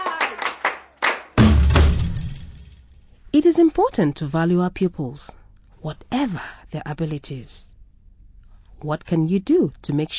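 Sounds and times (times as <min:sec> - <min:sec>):
class clapping: 0:00.0 - 0:01.4
speech: 0:03.5 - 0:07.7, 0:08.8 - 0:10.1.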